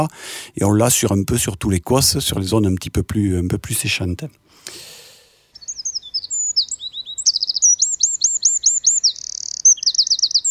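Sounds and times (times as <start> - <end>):
speech: 0.0 - 4.9
Mediterranean bird of prey chirping and trilling: 5.5 - 10.4.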